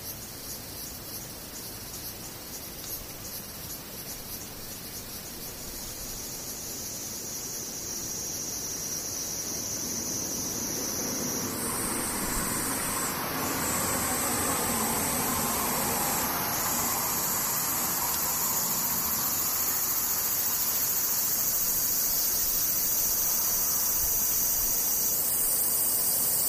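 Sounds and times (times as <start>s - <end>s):
cicadas buzzing: 0.0s - 26.4s
rushing noise: 10.4s - 21.2s.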